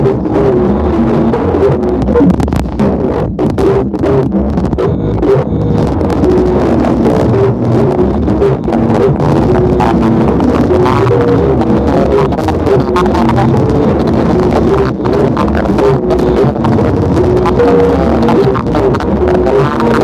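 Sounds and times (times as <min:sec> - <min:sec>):
glitch noise: 0:00.0 - 0:20.0.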